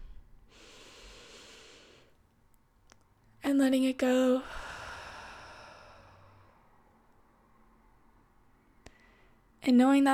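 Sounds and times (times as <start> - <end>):
deep breath in: 0.0 - 2.1, 4.4 - 6.7
speech: 3.5 - 4.6, 9.7 - 10.1.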